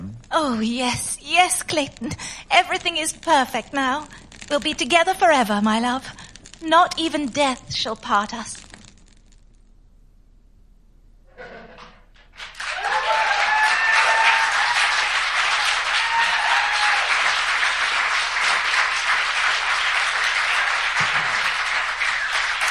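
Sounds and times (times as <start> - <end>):
speech: 0.4 - 8.6
audience applause: 12.3 - 22.6
cheers and whoops: 12.6 - 17.9.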